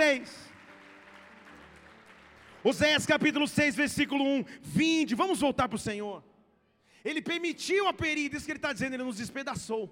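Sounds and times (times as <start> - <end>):
audience applause: 0.0 - 3.2
speech: 0.1 - 0.4, 2.6 - 6.3, 7.0 - 9.9.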